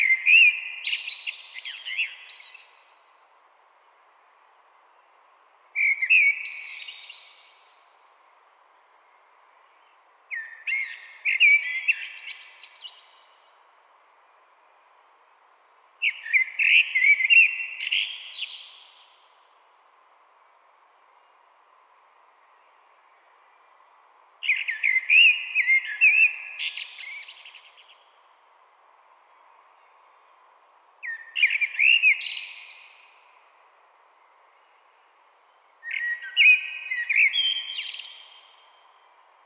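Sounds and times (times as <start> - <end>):
common blackbird singing: 0.0 - 3.0, 5.8 - 7.7, 10.3 - 13.4, 16.0 - 19.4, 24.4 - 28.1, 31.0 - 33.2, 35.8 - 39.0.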